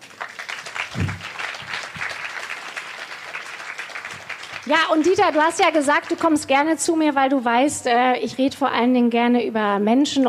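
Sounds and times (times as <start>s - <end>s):
applause: 0.0s - 6.6s
speech: 4.7s - 10.2s.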